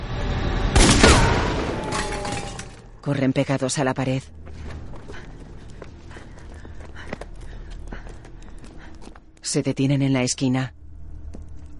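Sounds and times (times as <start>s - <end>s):
gunshots fired at a drone in a thriller film scene: 0.8s - 2.0s
speech: 3.0s - 4.4s, 9.5s - 10.8s.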